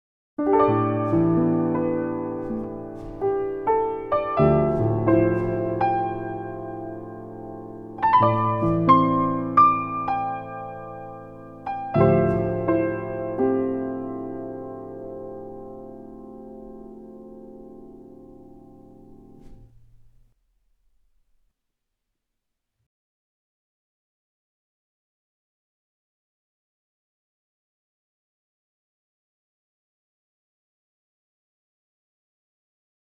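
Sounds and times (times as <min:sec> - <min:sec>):
dry piano: 0:00.4 - 0:20.4.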